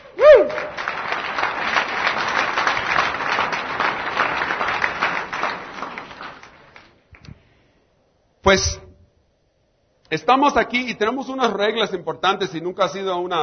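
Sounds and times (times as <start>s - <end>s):
audience clapping: 0.0s - 7.4s
speech: 8.5s - 8.8s, 10.1s - 13.4s.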